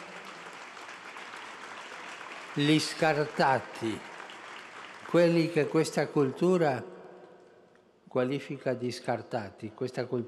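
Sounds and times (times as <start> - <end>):
audience applause: 0.0 - 6.7
speech: 2.6 - 4.1, 5.1 - 6.9, 8.1 - 10.2.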